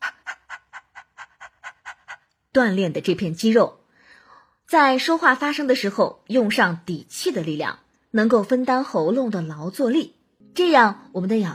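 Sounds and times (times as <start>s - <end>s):
person imitating dog panting: 0.0s - 2.4s
speech: 2.6s - 3.8s, 4.7s - 11.5s.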